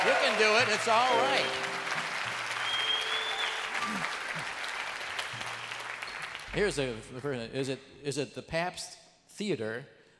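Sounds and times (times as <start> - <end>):
audience applause at Milwaukee's Pabst Theater: 0.0 - 6.8
speech: 0.4 - 1.8, 6.6 - 10.0.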